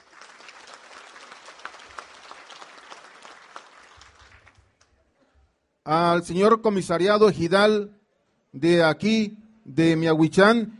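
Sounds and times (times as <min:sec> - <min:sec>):
crowd applause: 0:00.0 - 0:04.8
speech: 0:05.9 - 0:10.7.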